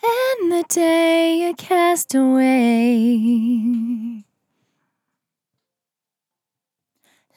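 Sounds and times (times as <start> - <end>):
vocal in F at 65 bpm: 0.0 - 4.2.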